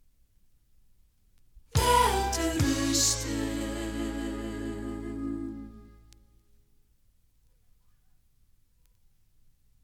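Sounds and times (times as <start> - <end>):
maxi jingle single: 1.8 - 6.0.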